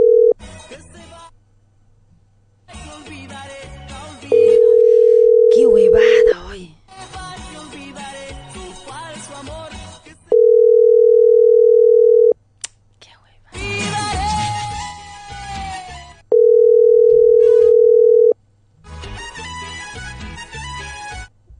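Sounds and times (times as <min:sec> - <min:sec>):
telephone ringback tones of an unanswered call: 0:00.0 - 0:00.4, 0:04.3 - 0:06.3, 0:10.3 - 0:12.4, 0:16.3 - 0:18.4
music: 0:00.4 - 0:01.3, 0:02.7 - 0:04.7, 0:06.9 - 0:10.3, 0:13.5 - 0:16.2, 0:18.8 - 0:21.4.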